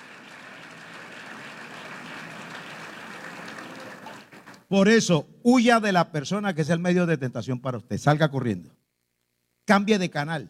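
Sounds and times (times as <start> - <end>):
audience applause: 0.0 - 4.7
speech: 4.7 - 8.8, 9.7 - 10.4.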